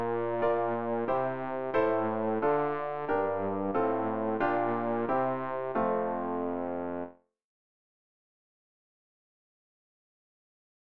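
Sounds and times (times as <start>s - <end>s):
bass: 0.0s - 7.1s.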